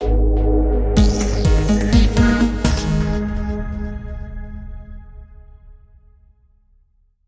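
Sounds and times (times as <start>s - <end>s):
techno music: 0.0s - 4.3s.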